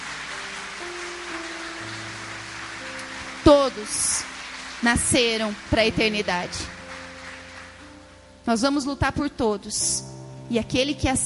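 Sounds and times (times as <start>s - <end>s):
audience applauding: 0.0s - 8.1s
speech: 3.5s - 6.8s, 8.5s - 11.2s.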